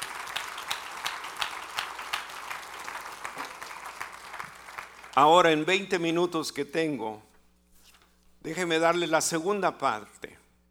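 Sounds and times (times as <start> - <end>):
audience applause: 0.0 - 5.4
speech: 5.2 - 7.3, 8.4 - 10.4.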